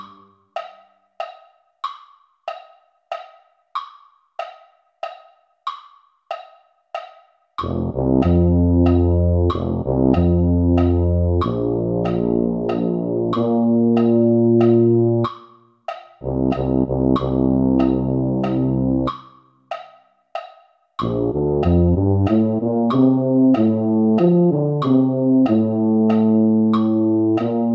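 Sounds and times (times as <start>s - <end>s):
tuba: 7.6s - 15.3s, 16.2s - 19.2s, 21.0s - 27.7s.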